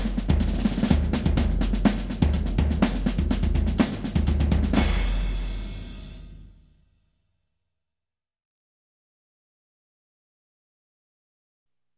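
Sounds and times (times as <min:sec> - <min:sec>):
marching band loop: 0:00.0 - 0:05.6.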